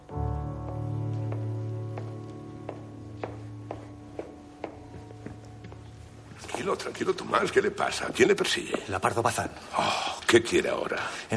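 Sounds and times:
hurried footsteps along a corridor: 0.3s - 9.3s
speech: 6.6s - 11.3s.

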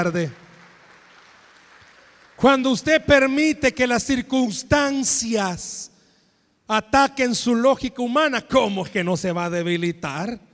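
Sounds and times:
speech: 0.0s - 0.4s, 2.4s - 5.9s, 6.7s - 10.5s
applause: 0.0s - 2.9s.

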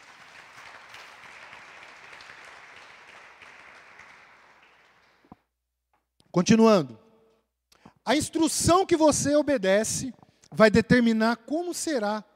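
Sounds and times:
audience applause: 0.0s - 5.3s
speech: 6.4s - 7.0s, 8.1s - 12.3s.

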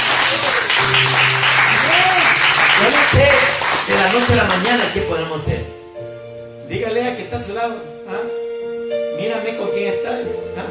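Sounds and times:
audience applauding: 0.0s - 5.0s
audience shouting: 1.7s - 2.4s
speech: 2.8s - 5.8s, 6.7s - 8.4s, 9.2s - 10.7s.

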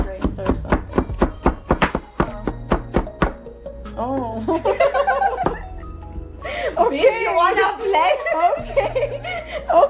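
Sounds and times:
chopping food while sitting down: 0.0s - 3.4s
laughter: 4.4s - 5.8s, 6.9s - 9.8s.

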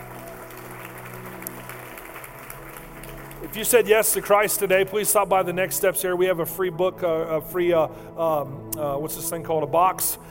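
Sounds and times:
audience clapping hands: 0.0s - 5.3s
speech: 3.4s - 10.2s.

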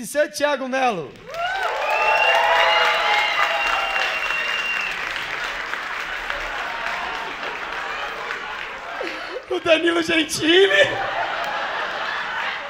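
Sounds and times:
speech: 0.0s - 1.6s, 9.6s - 11.2s
audience applause: 1.2s - 12.6s
high whistles and cheers: 1.3s - 8.1s
laughter: 3.1s - 12.6s.

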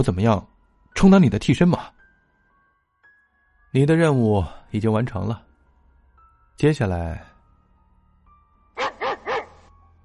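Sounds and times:
speech: 0.0s - 2.0s, 3.7s - 5.5s, 6.6s - 7.3s
dog barking: 8.8s - 9.7s.

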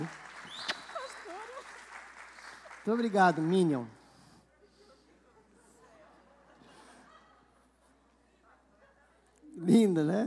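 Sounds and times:
round of applause: 0.0s - 4.1s
speech: 2.9s - 4.0s, 10.0s - 10.2s
laughter: 4.6s - 9.2s.

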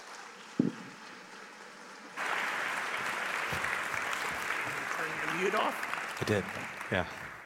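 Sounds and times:
dull thump: 0.6s - 0.9s
congregation applauding to welcome a guest speaker in a church sanctuary: 2.2s - 7.4s
speech: 3.5s - 3.7s, 5.4s - 7.2s.

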